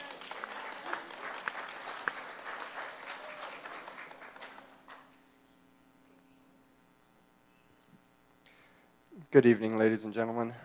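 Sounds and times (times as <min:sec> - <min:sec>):
audience applause: 0:00.0 - 0:05.1
speech: 0:09.3 - 0:10.6.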